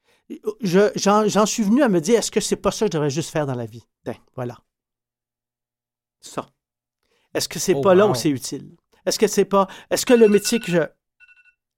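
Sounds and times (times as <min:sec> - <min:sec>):
speech: 0:00.3 - 0:04.7, 0:06.2 - 0:06.6, 0:07.3 - 0:11.0
phone alarm going off: 0:10.0 - 0:11.6.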